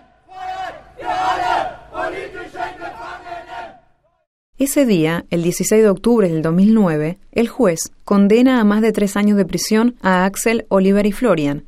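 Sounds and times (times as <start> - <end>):
protesters chanting and shouting outside a courthouse: 0.0 - 4.2
speech: 4.6 - 11.6.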